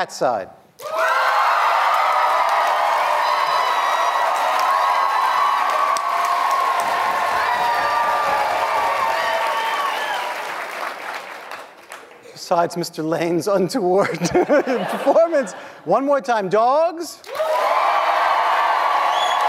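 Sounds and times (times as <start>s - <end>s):
speech: 0.0s - 1.1s, 12.5s - 17.3s
crowd applauding and cheering: 0.8s - 12.3s, 17.2s - 19.4s
laughter: 14.0s - 15.9s.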